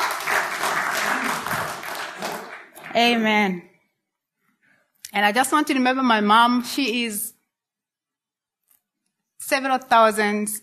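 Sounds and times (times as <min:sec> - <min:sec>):
audience clapping: 0:00.0 - 0:03.6
speech: 0:03.0 - 0:03.7, 0:05.1 - 0:07.3, 0:09.4 - 0:10.6.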